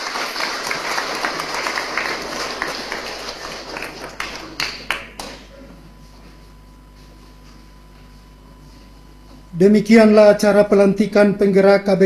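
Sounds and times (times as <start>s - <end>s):
church congregation applauding newly installed parish leaders: 0.0s - 5.5s
speech: 9.6s - 12.0s.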